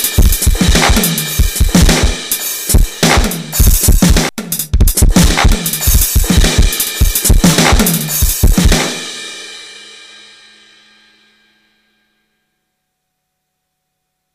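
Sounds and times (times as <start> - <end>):
randomized beat: 0.0 - 9.2.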